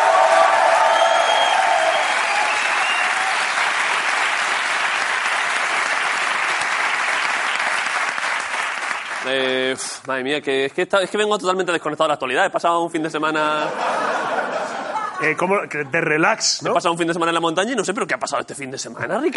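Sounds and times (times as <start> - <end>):
audience applause: 0.0 - 9.4
speech: 9.3 - 14.1, 15.2 - 19.3
laughter: 13.4 - 15.5.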